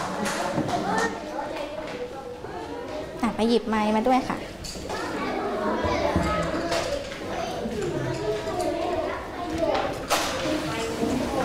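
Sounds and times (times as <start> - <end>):
classmates clapping hands: 0.0 - 1.2
children chattering: 0.0 - 11.4
speech: 3.2 - 4.5.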